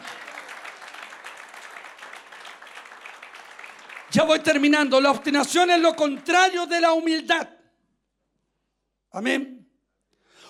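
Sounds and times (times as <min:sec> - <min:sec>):
audience applauding loudly: 0:00.0 - 0:07.2
speech: 0:04.1 - 0:07.6, 0:09.2 - 0:09.5.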